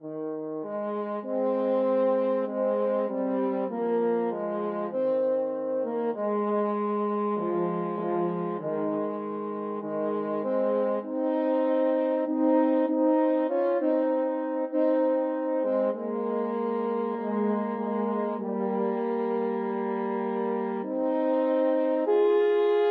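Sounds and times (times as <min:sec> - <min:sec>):
french horn duet: 0:00.0 - 0:22.9.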